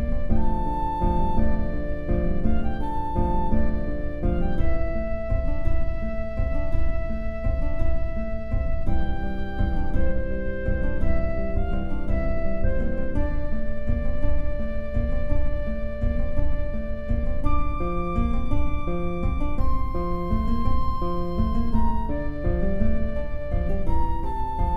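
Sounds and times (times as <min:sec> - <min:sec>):
flute: 0:00.0 - 0:24.7
guitar: 0:00.0 - 0:24.7.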